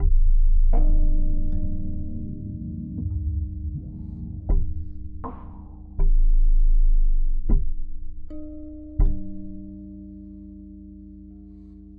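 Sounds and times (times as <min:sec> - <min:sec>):
electronic percussion: 0:00.0 - 0:07.9.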